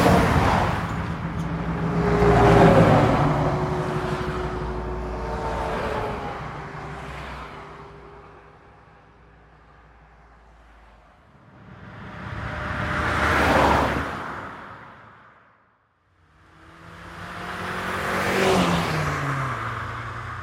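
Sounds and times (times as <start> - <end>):
trains passing by: 0.0 - 8.5, 11.3 - 15.1
trucks passing by: 0.0 - 20.4.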